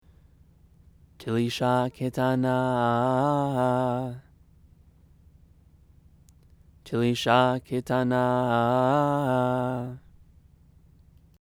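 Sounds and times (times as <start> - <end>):
scripture chanting: 1.2 - 4.4, 6.8 - 10.3.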